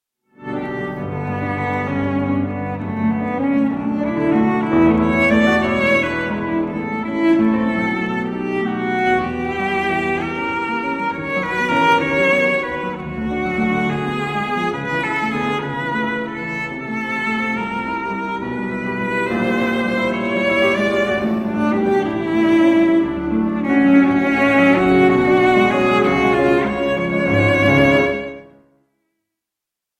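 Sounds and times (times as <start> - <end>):
cello playing a scherzo: 0.3 - 28.6
piano playing a scherzo: 0.3 - 29.0.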